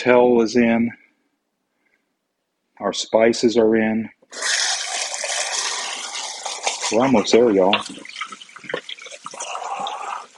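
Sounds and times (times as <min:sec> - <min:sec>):
speech: 0:00.0 - 0:01.0, 0:02.8 - 0:04.7, 0:06.9 - 0:08.1
rinsing out cans under running water: 0:04.3 - 0:10.3.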